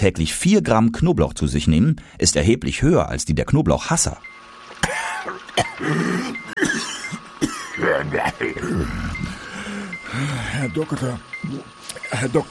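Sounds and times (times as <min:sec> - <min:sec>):
speech: 0:00.0 - 0:09.4, 0:10.1 - 0:12.4
man coughing heavily: 0:04.8 - 0:09.2.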